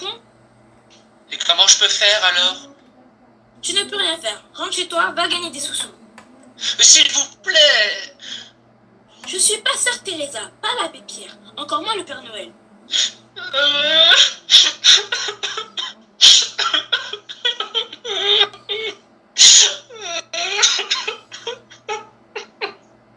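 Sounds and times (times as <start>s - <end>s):
speech: 1.5s - 2.7s, 3.6s - 6.0s, 6.6s - 8.5s, 9.2s - 15.6s
person crying and sobbing: 12.9s - 22.8s.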